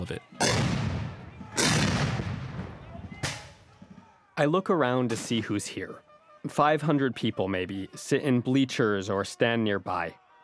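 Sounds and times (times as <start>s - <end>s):
speech: 0.0s - 0.7s, 4.4s - 10.2s
low rumbling outdoor din: 0.0s - 4.5s
cannon and rifle fire at battle reenactment: 0.4s - 3.6s.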